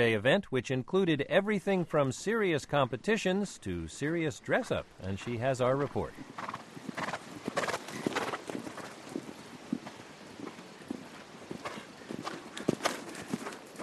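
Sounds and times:
speech: 0.0s - 6.6s
horses cantering around a large outdoor ring: 5.0s - 13.8s.

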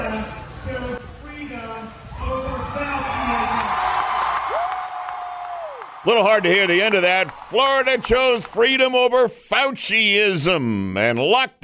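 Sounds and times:
crowd cheering at a concert: 2.6s - 9.0s
speech: 6.0s - 11.6s.

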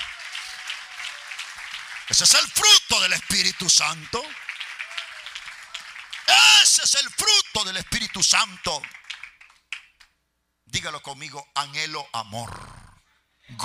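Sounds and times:
audience applause: 0.0s - 9.9s
man speaking loudly: 2.1s - 4.4s, 6.3s - 8.9s, 10.7s - 12.5s
speech: 2.1s - 4.5s, 6.8s - 9.0s, 10.8s - 12.8s, 13.5s - 13.6s.

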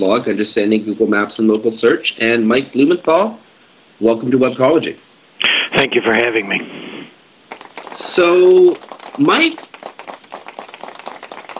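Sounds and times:
speech: 0.0s - 5.1s, 5.7s - 6.8s, 8.2s - 9.7s
golf clap, soft polite hand claps from a few people: 7.5s - 11.5s.

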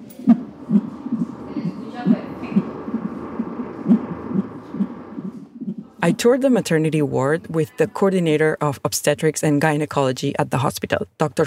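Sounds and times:
fetal heartbeat on a monitor: 0.0s - 7.2s
low hum: 0.0s - 7.5s
speech: 6.0s - 11.4s.

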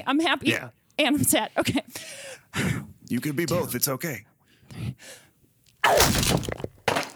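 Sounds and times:
speech: 0.0s - 5.2s, 5.9s - 6.7s
crash of breaking material with crumbling debris: 5.8s - 7.1s
wall being punched down: 5.8s - 7.1s.

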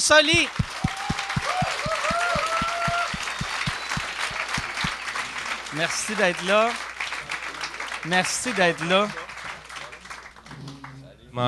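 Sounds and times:
speech: 0.1s - 0.6s, 5.7s - 6.9s, 8.0s - 9.2s
audience clapping: 0.2s - 11.0s
cheers and whoops: 0.7s - 4.8s.

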